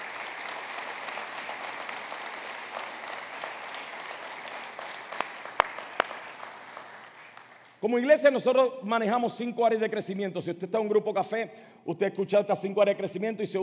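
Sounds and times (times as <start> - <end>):
audience applauding: 0.0 - 7.8
speech: 7.8 - 13.6.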